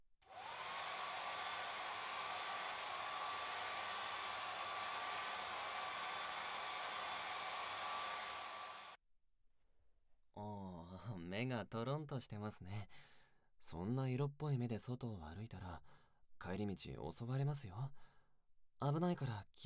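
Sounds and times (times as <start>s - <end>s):
hair dryer drying hair after a head spa: 0.2s - 9.0s
speech: 11.3s - 18.1s, 18.8s - 19.6s.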